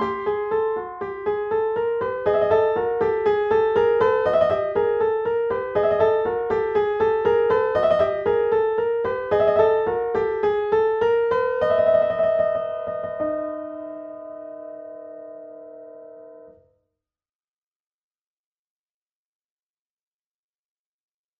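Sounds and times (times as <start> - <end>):
piano fantasy in 25 edo: 0.0 - 16.6.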